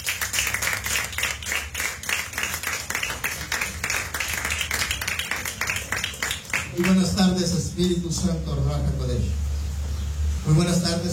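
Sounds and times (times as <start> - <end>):
audience clapping hands: 0.0 - 8.0
speech: 6.8 - 9.4, 10.5 - 11.1.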